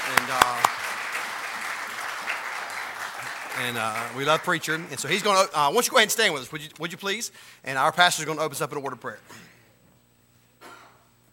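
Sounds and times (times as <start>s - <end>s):
congregation at Victory Baptist Church applauding its pastor: 0.0s - 6.4s
speech: 3.6s - 9.5s.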